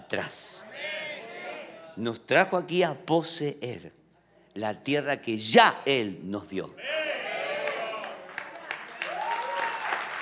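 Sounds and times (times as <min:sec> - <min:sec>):
speech: 0:00.1 - 0:01.0, 0:02.0 - 0:04.0, 0:04.6 - 0:06.8
audience applause: 0:07.6 - 0:10.2.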